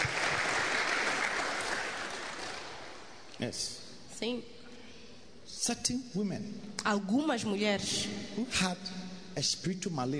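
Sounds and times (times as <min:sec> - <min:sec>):
audience clapping: 0:00.0 - 0:03.2
speech: 0:03.4 - 0:04.6, 0:05.5 - 0:10.1.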